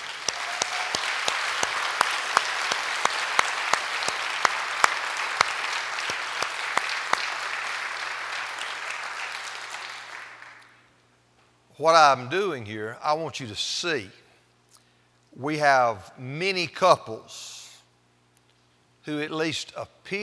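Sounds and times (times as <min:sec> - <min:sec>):
audience applause: 0:00.0 - 0:10.8
speech: 0:11.8 - 0:14.2, 0:15.4 - 0:17.6, 0:19.1 - 0:20.2.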